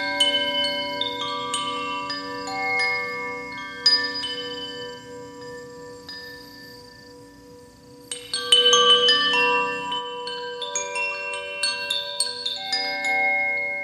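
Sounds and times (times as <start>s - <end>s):
chimes and bells ringing: 0.0s - 13.8s.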